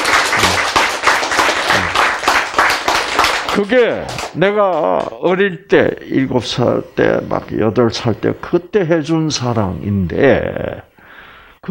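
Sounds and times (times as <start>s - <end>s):
audience applause: 0.0s - 4.4s
speech: 3.6s - 10.9s.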